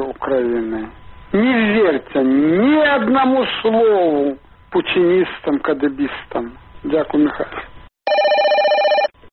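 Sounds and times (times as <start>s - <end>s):
speech: 0.2s - 7.7s
electronic telephone ring jingle for a listener call-in segment: 8.1s - 9.2s.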